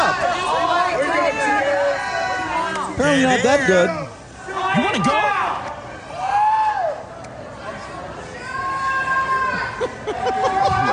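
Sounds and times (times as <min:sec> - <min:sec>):
laughter: 0:00.0 - 0:00.8, 0:09.5 - 0:10.9
audience members yelling at performer: 0:00.0 - 0:07.1, 0:07.8 - 0:10.9
speech: 0:03.0 - 0:04.1, 0:04.7 - 0:05.3.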